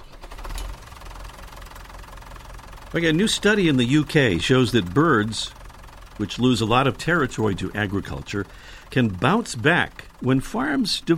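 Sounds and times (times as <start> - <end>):
Massey Ferguson tractor diesel engine starting: 0.0 - 11.1
speech: 2.9 - 5.6, 6.2 - 11.1.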